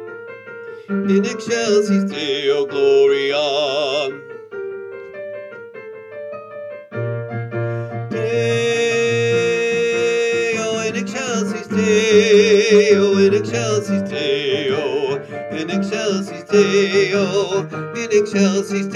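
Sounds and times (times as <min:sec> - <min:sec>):
alto and bass voices singing rehearsal tracks: 0:01.0 - 0:04.2, 0:08.1 - 0:18.9.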